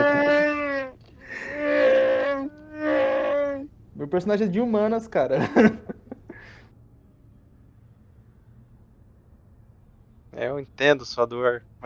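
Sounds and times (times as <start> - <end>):
laughter: 0.0 - 0.7, 1.3 - 3.0, 5.3 - 6.6
voice imitating a scream: 0.0 - 3.7
speech: 4.0 - 6.0, 10.4 - 11.8.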